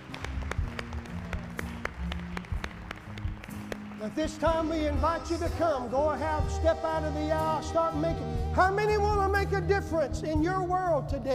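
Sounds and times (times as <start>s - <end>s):
audience hand clapping: 0.0s - 5.8s
speech: 4.0s - 11.3s.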